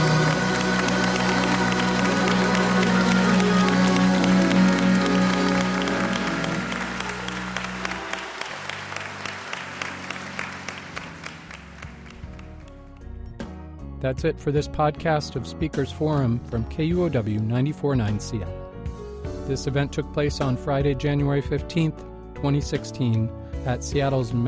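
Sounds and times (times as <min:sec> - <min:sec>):
audience clapping hands: 0:00.0 - 0:13.2
speech: 0:14.1 - 0:18.6, 0:19.5 - 0:24.4.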